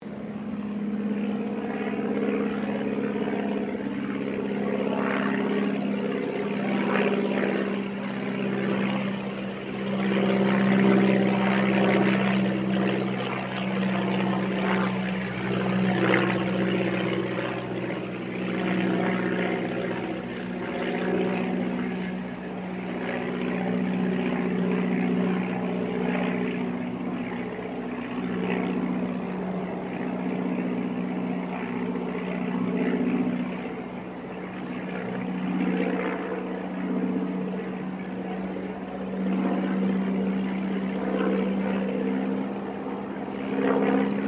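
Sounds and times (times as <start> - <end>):
distant de Havilland DH82A Tiger Moth aircraft passing: 0.0 - 44.2.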